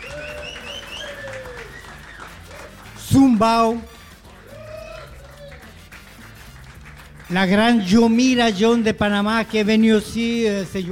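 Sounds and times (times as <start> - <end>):
audience applause: 0.0 - 3.4, 4.1 - 8.1
speech: 3.1 - 3.9, 7.3 - 10.9.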